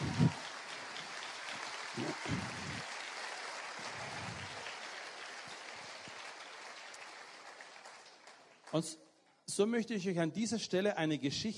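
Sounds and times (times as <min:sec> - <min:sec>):
audience applause: 0:00.0 - 0:08.9
speech: 0:08.7 - 0:11.5.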